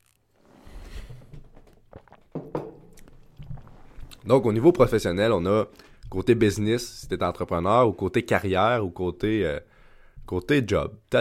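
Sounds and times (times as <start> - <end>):
person sipping water: 0.0 - 4.6
speech: 4.3 - 11.1.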